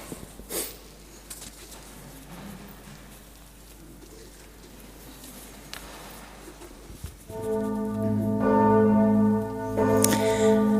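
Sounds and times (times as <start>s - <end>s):
church tower bell striking: 7.3s - 10.7s.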